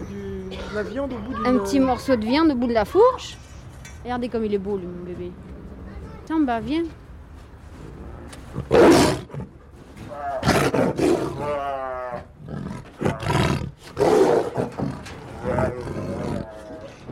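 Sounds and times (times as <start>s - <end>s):
speech: 0.5s - 3.4s, 4.0s - 5.5s, 6.3s - 7.0s
big cat roaring in a cage: 7.9s - 17.1s.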